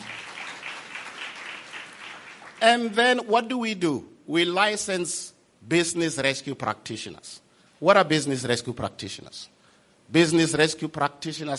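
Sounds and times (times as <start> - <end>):
audience applause at a celebration event in Umlazi township, KwaZulu-Natal: 0.0 - 2.6
speech: 2.6 - 11.5.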